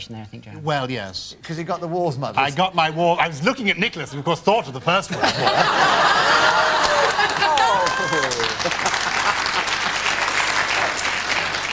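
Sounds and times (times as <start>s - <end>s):
speech: 0.0s - 10.0s
studio audience laughter: 4.0s - 10.4s
studio audience applause: 5.6s - 11.7s.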